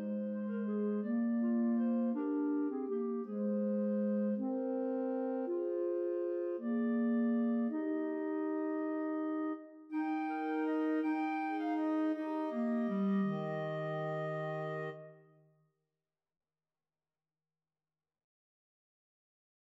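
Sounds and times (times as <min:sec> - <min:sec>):
clarinet trio playing: 0:00.0 - 0:15.2.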